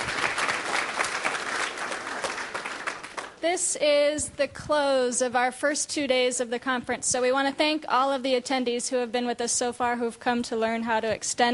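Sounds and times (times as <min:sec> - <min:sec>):
audience applause: 0:00.0 - 0:03.4
speech: 0:03.4 - 0:11.5.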